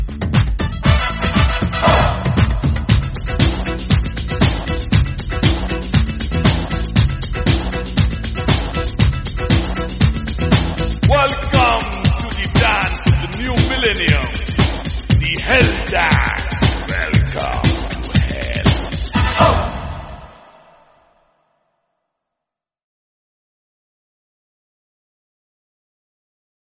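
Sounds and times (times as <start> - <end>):
instrumental dance music: 0.0 - 20.9.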